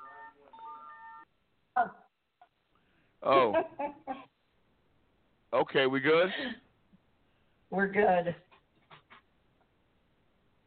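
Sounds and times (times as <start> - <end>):
cell phone ringing: 0.0 - 1.2
speech: 1.8 - 2.0, 3.2 - 4.2, 5.5 - 6.6, 7.7 - 8.4.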